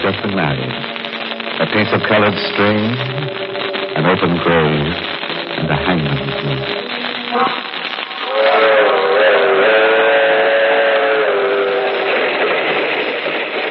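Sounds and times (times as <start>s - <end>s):
speech: 0.1s - 1.0s, 1.6s - 7.8s
Southeast Limited passenger train on humming rails: 8.9s - 13.6s.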